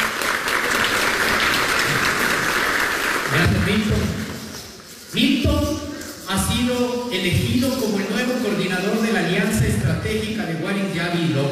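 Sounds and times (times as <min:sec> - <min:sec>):
audience applause: 0:00.0 - 0:03.5
speech: 0:03.3 - 0:04.2, 0:06.3 - 0:11.5.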